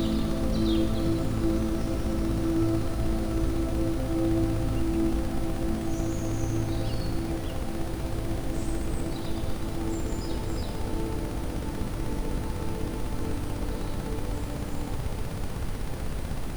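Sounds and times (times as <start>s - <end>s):
ambient sound with Rife frequencies: 0.0s - 16.4s.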